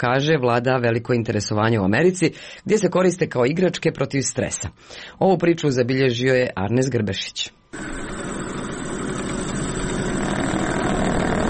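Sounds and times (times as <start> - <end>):
speech: 0.0 - 8.2
decades-old lathe running: 7.8 - 11.4.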